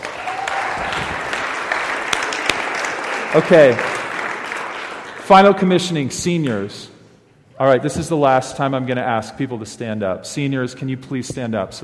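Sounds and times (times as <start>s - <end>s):
crowd applauding: 0.0s - 5.6s
speech: 3.3s - 4.0s, 5.3s - 6.9s, 7.6s - 11.8s.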